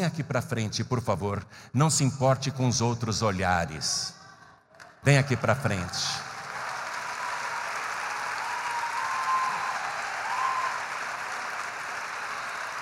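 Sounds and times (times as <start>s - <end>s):
speech: 0.0s - 4.2s, 5.0s - 6.3s
audience applause: 5.1s - 12.7s.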